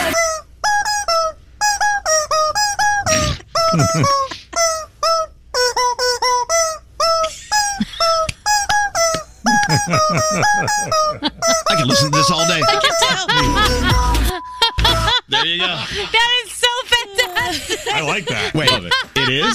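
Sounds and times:
rubber chicken squeaks pitched into a song melody as a remix: 0.1s - 9.3s
laughter: 3.1s - 4.6s, 9.1s - 19.5s
speech: 3.8s - 4.2s, 10.3s - 11.1s, 11.9s - 13.3s.

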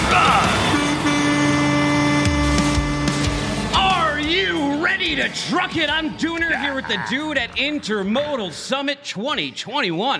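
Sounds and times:
train heavy mechanical hum: 0.0s - 4.0s
speech: 5.2s - 10.1s
laughter: 6.3s - 7.6s.

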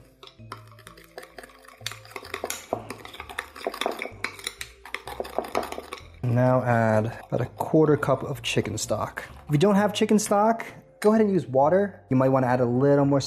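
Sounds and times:
utensil stirring ingredients in a bowl: 0.0s - 10.5s
speech: 6.2s - 13.2s.

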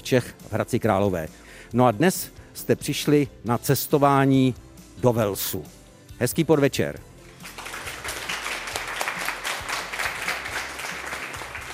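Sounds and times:
speech: 0.1s - 7.1s
audience applause in a café: 7.4s - 11.7s.

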